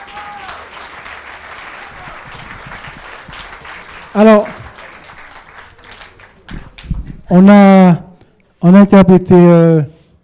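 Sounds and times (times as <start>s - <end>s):
audience applauding musicians after a Gwoka performance: 0.0s - 7.3s
speech: 4.1s - 4.5s, 7.3s - 8.0s, 8.6s - 9.9s.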